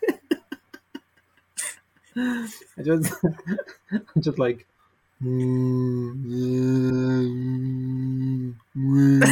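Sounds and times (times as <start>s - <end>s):
laughter: 0.0s - 1.8s
speech: 2.2s - 9.3s
voice imitating whale song: 5.2s - 9.2s.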